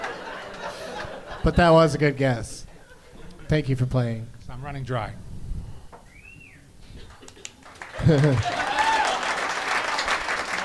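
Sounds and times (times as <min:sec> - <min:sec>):
audience applause: 0:00.0 - 0:01.0, 0:07.2 - 0:10.6
laughter: 0:00.0 - 0:03.6, 0:06.9 - 0:10.6
speech: 0:01.4 - 0:02.6, 0:03.5 - 0:05.2, 0:08.0 - 0:08.6.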